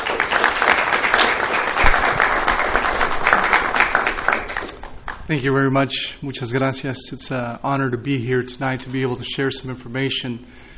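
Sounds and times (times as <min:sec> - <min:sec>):
audience applause welcoming a speaker after his introduction: 0:00.0 - 0:05.2
speech: 0:05.3 - 0:10.7.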